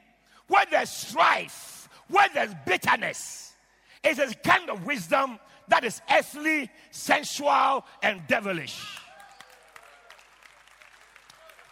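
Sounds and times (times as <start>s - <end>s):
speech: 0.5s - 9.0s
audience clapping hands: 9.0s - 11.7s.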